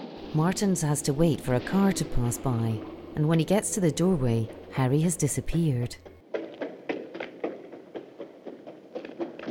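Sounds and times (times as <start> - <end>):
speech: 0.3 - 6.1
running footsteps on a hard surface: 3.7 - 9.4.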